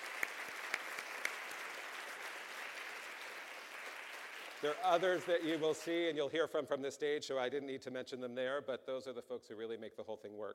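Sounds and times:
audience applause: 0.0 - 6.0
speech: 4.6 - 10.5.

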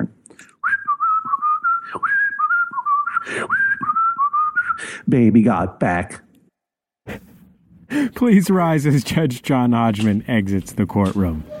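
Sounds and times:
person whistling a tune: 0.6 - 4.9
speech: 5.1 - 6.2, 8.2 - 11.5.

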